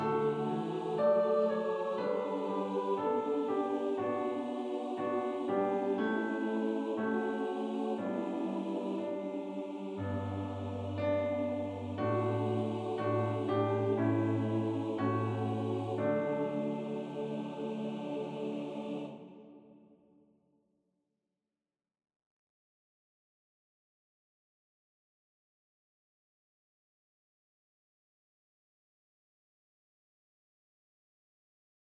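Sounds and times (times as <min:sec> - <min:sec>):
hymn: 0:00.0 - 0:19.8.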